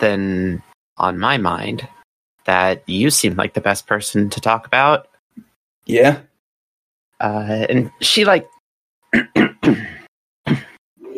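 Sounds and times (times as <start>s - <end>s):
speech: 0.0s - 6.3s, 7.2s - 9.9s, 10.5s - 10.7s
man clearing his throat with something caught in it: 9.1s - 11.1s.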